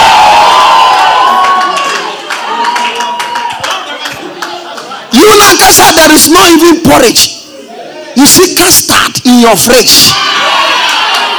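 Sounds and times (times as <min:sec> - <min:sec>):
audience shouting and cheering: 0:00.0 - 0:07.0, 0:09.8 - 0:11.3
scattered claps: 0:01.3 - 0:05.0
speech: 0:05.3 - 0:07.4, 0:08.2 - 0:10.9.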